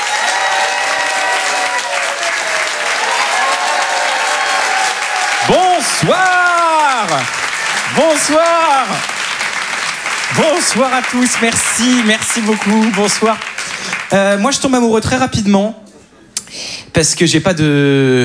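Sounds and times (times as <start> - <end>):
people whooping: 0.0 - 13.4
audience applauding loudly: 0.0 - 14.8
speech: 8.0 - 9.1, 10.3 - 15.8, 17.0 - 18.2.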